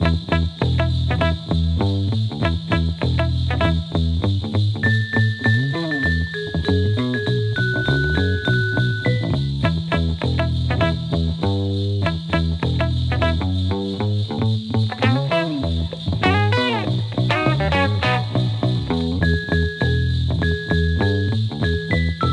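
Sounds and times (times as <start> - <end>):
low Christmas jingle music: 0.0 - 22.3.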